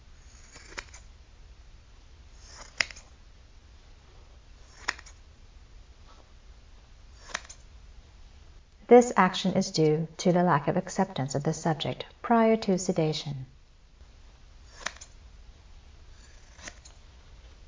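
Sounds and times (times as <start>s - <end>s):
hiss: 0.0s - 17.6s
scissors cutting through clothing: 2.4s - 3.0s, 4.6s - 5.2s, 7.2s - 7.6s, 14.7s - 15.2s, 16.2s - 17.0s
speech: 8.9s - 13.5s.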